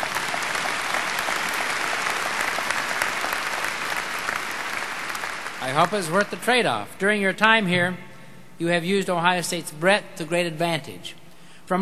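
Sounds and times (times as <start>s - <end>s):
audience applause: 0.0s - 6.4s
speech: 5.7s - 11.8s.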